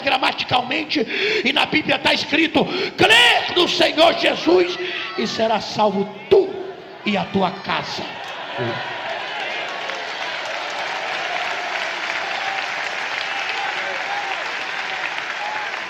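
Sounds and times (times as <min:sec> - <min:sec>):
speech: 0:00.1 - 0:09.0
audience applause: 0:08.1 - 0:15.8.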